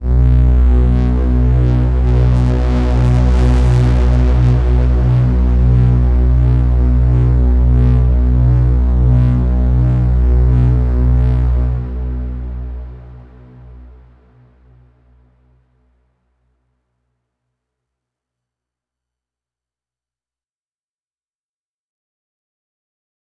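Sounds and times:
overlay drone: 0.0s - 15.5s.

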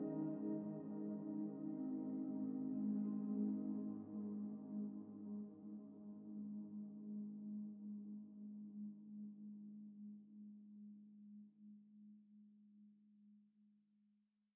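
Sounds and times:
ambient music: 0.0s - 9.0s.

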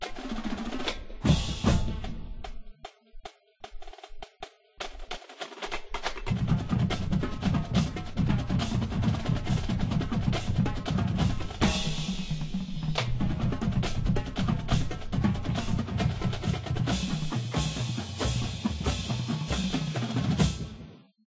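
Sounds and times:
drums: 0.0s - 21.2s.

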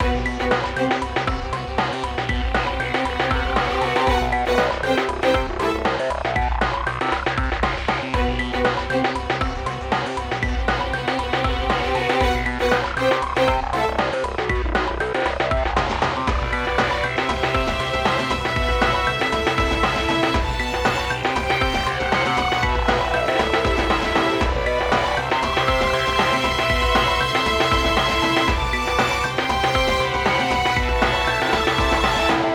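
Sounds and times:
tense story music: 0.0s - 32.5s.

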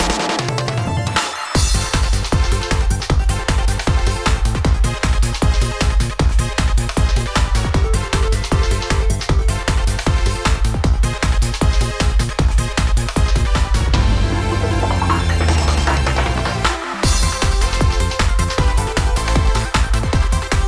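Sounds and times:
battle background music: 0.0s - 20.6s.

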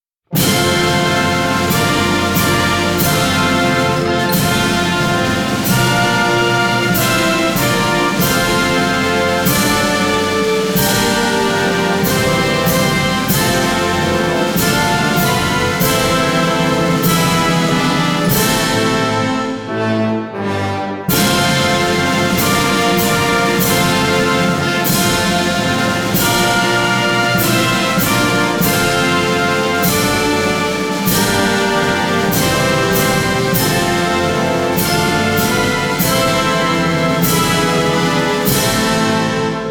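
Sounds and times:
national anthem: 0.3s - 39.6s.

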